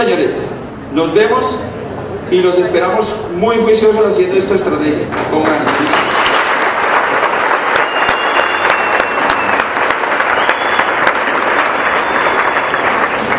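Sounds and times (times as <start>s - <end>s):
speech: 0.0s - 6.0s
audience applause: 5.2s - 13.3s.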